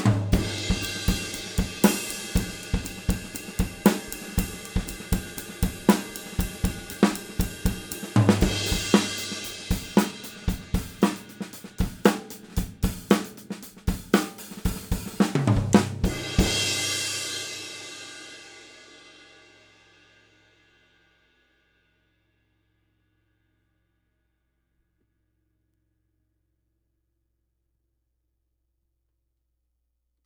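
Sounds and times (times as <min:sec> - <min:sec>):
24 Paiste cymbal: 0:00.0 - 0:21.8.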